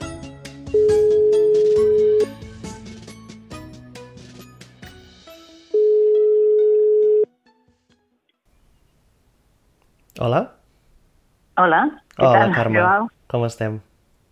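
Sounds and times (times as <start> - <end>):
music: 0.0 - 8.4
outgoing-call ringback tone: 0.8 - 2.4, 5.8 - 7.3
speech: 10.3 - 10.6, 11.6 - 13.9.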